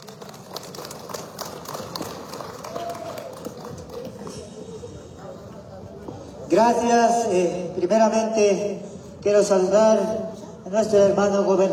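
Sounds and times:
applause: 0.0s - 4.5s
speech: 6.5s - 11.7s.

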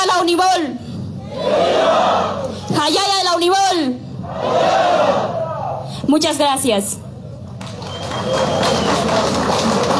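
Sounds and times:
speech: 0.2s - 5.2s, 6.1s - 7.0s, 8.2s - 9.9s
audience applause: 7.6s - 9.9s.

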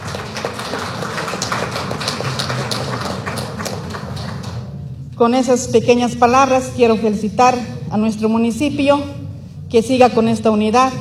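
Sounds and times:
crowd applauding: 0.0s - 4.7s
speech: 5.2s - 10.9s.

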